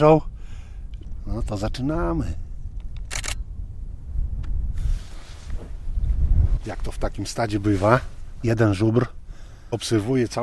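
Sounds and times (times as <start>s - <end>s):
speech: 0.0s - 0.3s, 1.3s - 2.4s, 6.6s - 10.4s
strong wind buffeting the microphone outdoors near a resting herd of bison: 0.0s - 9.7s
camera click: 2.8s - 3.5s.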